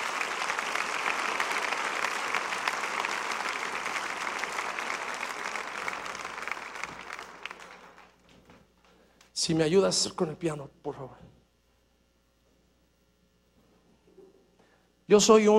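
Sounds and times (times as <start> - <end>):
audience applause: 0.0 - 8.2
speech: 9.4 - 11.4, 15.1 - 15.5.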